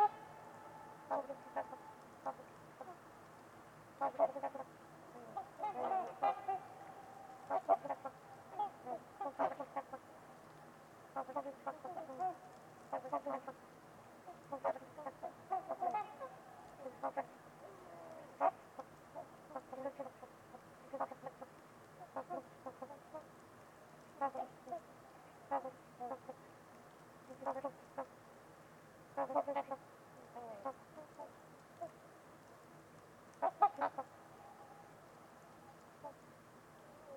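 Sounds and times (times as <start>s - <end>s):
trumpeter swans honking: 0.0s - 3.1s, 4.0s - 10.1s, 11.1s - 13.6s, 14.3s - 23.3s, 29.2s - 29.8s, 33.4s - 34.8s
faint steady background hiss: 0.0s - 37.1s.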